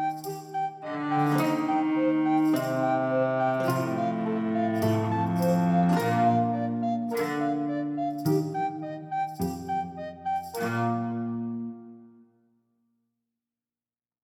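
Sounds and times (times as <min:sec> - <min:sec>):
music loop: 0:00.0 - 0:11.3.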